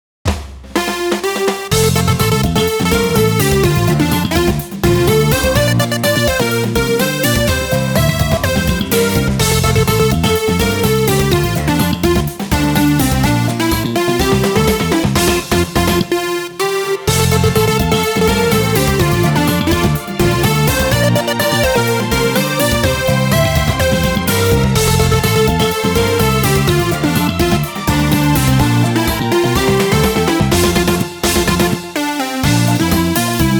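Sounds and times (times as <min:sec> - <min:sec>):
summer background music: 0:00.8 - 0:33.5.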